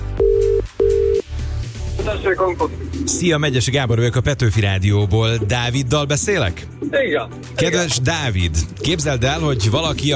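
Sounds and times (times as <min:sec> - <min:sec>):
telephone line beeps as a radio presenter calls a listener: 0:00.2 - 0:01.2
speech: 0:02.2 - 0:10.1.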